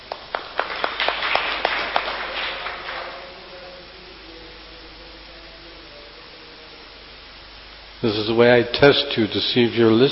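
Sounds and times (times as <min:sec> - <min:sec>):
audience applause: 0:00.0 - 0:03.8
speech: 0:08.0 - 0:10.1.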